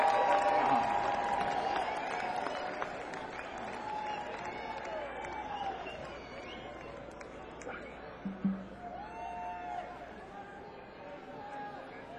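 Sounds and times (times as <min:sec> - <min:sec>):
crowd applauding: 0:00.0 - 0:07.8
cheering: 0:00.0 - 0:08.0, 0:08.6 - 0:12.1.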